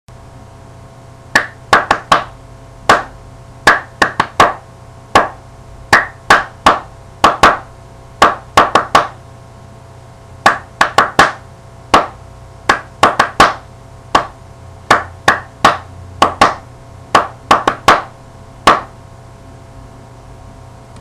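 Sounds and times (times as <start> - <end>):
percussion: 1.4 - 3.1, 3.7 - 4.6, 5.2 - 7.6, 8.2 - 9.2, 10.4 - 13.6, 14.2 - 18.9.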